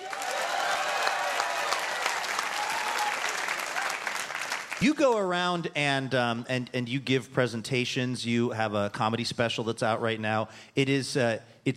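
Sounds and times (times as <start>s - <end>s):
audience applause: 0.0s - 5.0s
speech: 4.8s - 11.7s.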